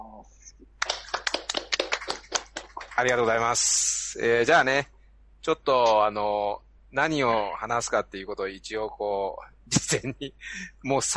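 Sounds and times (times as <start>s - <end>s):
speech: 0.2s - 1.0s, 3.0s - 11.1s
crowd clapping: 0.8s - 3.5s.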